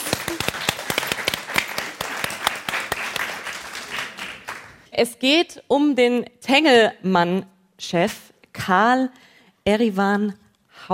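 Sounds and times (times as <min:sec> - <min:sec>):
small group applauding: 0:00.0 - 0:04.9
speech: 0:05.0 - 0:10.9.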